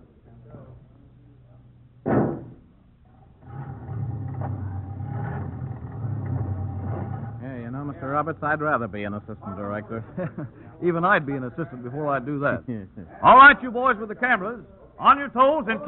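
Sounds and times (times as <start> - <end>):
old car engine running: 3.4 - 9.8
laughter: 8.0 - 13.2
speech: 8.1 - 15.8.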